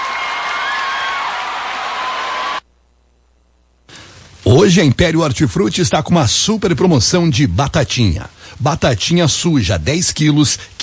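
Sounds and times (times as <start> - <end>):
audience applause: 0.0 - 2.6
speech: 4.6 - 10.8.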